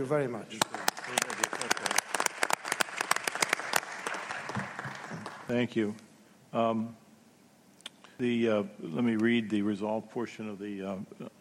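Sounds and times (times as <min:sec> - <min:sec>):
speech: 0:00.0 - 0:01.4, 0:05.5 - 0:07.0, 0:08.2 - 0:11.4
audience applause: 0:00.6 - 0:05.5.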